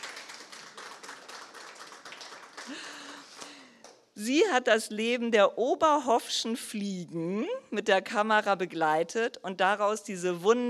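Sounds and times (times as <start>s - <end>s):
audience applauding: 0.0s - 3.6s
speech: 2.7s - 3.0s, 4.2s - 10.6s.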